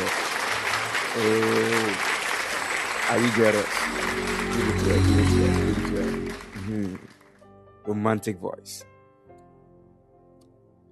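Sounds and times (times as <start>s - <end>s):
crowd clapping: 0.0s - 7.4s
speech: 1.2s - 1.7s, 3.1s - 7.1s, 7.9s - 8.9s
sustained tonal note: 3.7s - 7.0s.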